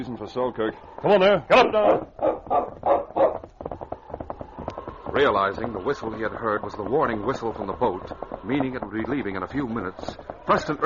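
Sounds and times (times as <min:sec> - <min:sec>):
speech: 0:00.0 - 0:03.3, 0:05.2 - 0:10.8
dog barking: 0:01.6 - 0:03.4.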